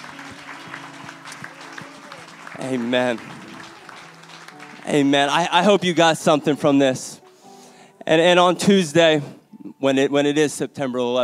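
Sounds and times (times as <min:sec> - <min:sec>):
audience clapping: 0:00.0 - 0:06.6
speech: 0:02.6 - 0:03.4, 0:04.9 - 0:07.2, 0:08.0 - 0:11.2.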